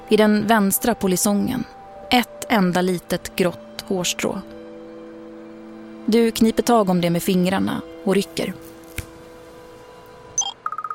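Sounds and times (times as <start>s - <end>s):
speech: 0.1s - 4.6s, 6.1s - 8.7s
smartwatch on the wrist sounding an alert: 10.4s - 10.9s.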